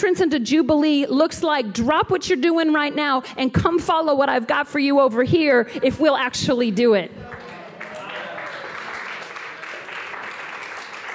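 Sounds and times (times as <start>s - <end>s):
speech: 0.0s - 7.4s
partial hand clapping: 7.2s - 11.1s.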